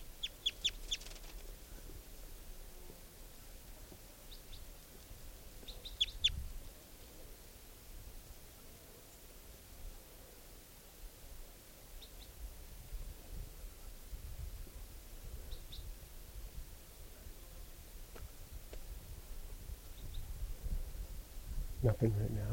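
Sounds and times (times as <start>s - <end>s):
juvenile bird giving high-pitched chirping calls: 0.0s - 1.2s, 5.6s - 6.4s, 15.5s - 15.9s
faint steady hiss: 0.0s - 22.5s
speech: 21.8s - 22.5s.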